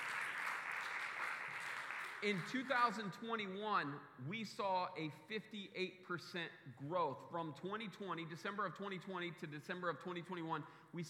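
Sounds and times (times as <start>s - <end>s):
audience clapping: 0.0s - 3.1s
speech: 2.2s - 11.0s.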